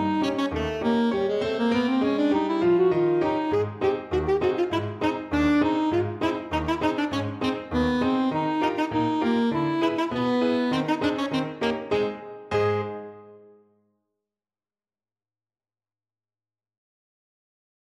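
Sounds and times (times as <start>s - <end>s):
alto saxophone: 0.0s - 13.6s.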